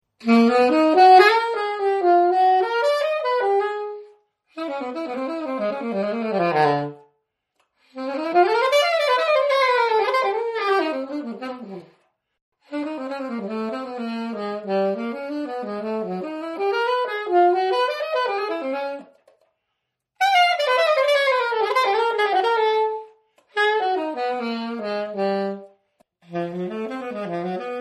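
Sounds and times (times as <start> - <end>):
alto saxophone: 0.1 - 19.5, 20.2 - 27.7.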